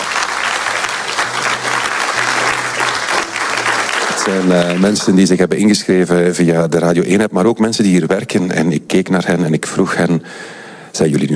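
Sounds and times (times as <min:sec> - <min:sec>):
live audience applauding: 0:00.0 - 0:05.5
speech: 0:04.2 - 0:11.3.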